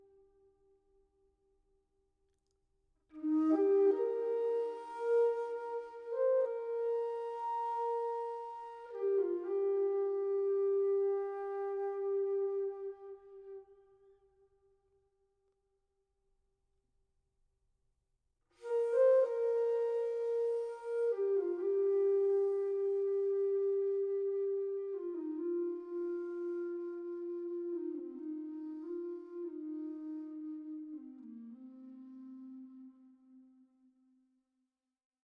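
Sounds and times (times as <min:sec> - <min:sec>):
meditative music: 0:03.1 - 0:14.2, 0:18.6 - 0:33.9.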